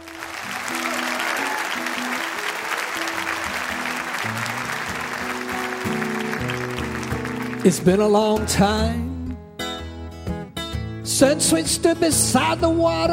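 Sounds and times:
crowd clapping and cheering welcoming a performer: 0.0 - 8.7
speech: 7.6 - 9.0, 11.2 - 13.1.

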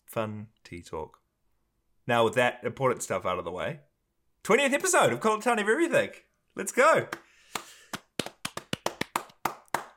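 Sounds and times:
speech: 0.2 - 1.2, 2.1 - 7.2
hand clapping: 7.1 - 9.9.

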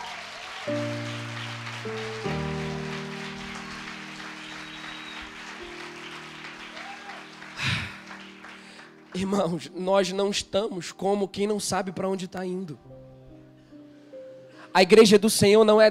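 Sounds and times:
audience applause: 0.0 - 9.4
sustained keyboard chords: 0.7 - 13.0
speech: 9.2 - 13.0, 14.8 - 15.8.

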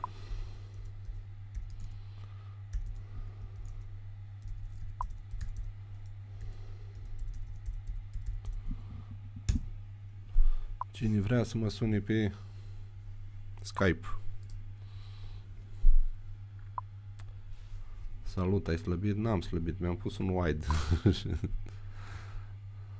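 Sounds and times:
steady low electrical hum: 0.0 - 22.9
typing on a computer keyboard: 0.7 - 2.0, 2.7 - 8.6
speech: 11.0 - 12.5, 13.7 - 14.2, 18.4 - 21.7
laughter: 20.7 - 21.6.

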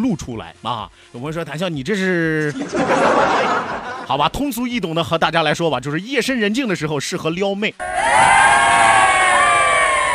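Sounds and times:
speech: 0.0 - 8.6
laughter: 2.4 - 4.2
crowd applauding and shouting: 7.8 - 10.1.

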